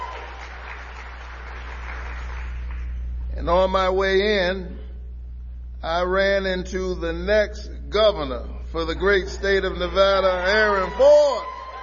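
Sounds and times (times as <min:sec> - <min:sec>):
audience applause: 0:00.0 - 0:02.9, 0:09.8 - 0:11.8
speech: 0:03.4 - 0:04.8, 0:05.8 - 0:11.5.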